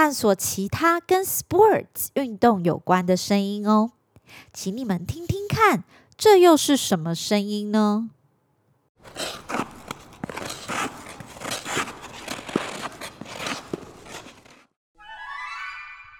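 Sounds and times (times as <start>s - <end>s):
speech: 0.0s - 8.2s
ice skating on an ice rink: 9.0s - 14.8s.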